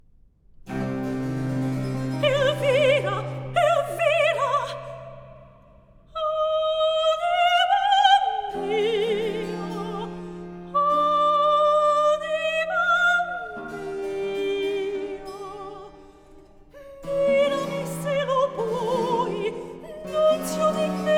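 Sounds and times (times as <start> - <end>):
soprano singing a cantata recitative: 1.8 - 5.4, 6.1 - 21.1.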